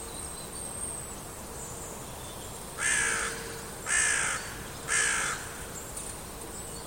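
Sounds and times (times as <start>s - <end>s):
bird uttering hoarse raspy caws: 2.8s - 5.8s.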